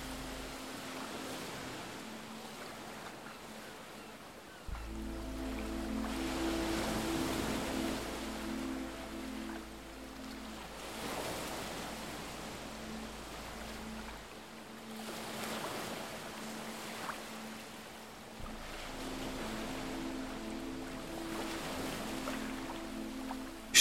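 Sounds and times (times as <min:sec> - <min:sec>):
low droning hum: 0:00.0 - 0:00.8, 0:04.7 - 0:14.7, 0:18.2 - 0:23.7
ocean waves breaking on a beach: 0:00.0 - 0:23.7.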